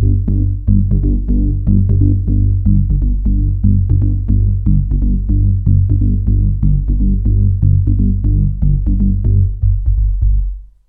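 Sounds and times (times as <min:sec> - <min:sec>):
bass loop: 0:00.0 - 0:10.8.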